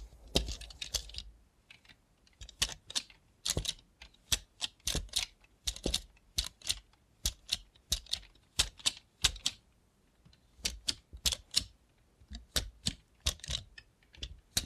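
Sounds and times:
robot hand tapping: 0:02.4 - 0:09.6, 0:10.6 - 0:14.6.

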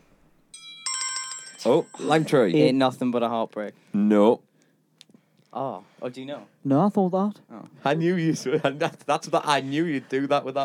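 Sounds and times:
bell buzzer ringing: 0:00.6 - 0:02.4
speech: 0:01.6 - 0:04.5, 0:05.5 - 0:10.6.

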